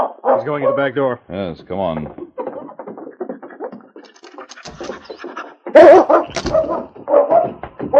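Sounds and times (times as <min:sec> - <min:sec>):
dog giving short excited yips and barks: 0:00.0 - 0:01.0, 0:04.2 - 0:07.9
speech: 0:00.4 - 0:02.2, 0:05.8 - 0:06.9
dog whimpering on scent: 0:02.2 - 0:07.1.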